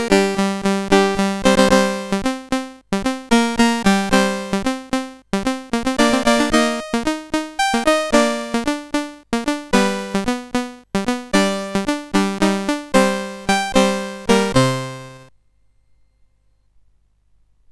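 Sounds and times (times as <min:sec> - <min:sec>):
chiptune game music on a SID CSG8580R5 chip: 0:00.0 - 0:15.3.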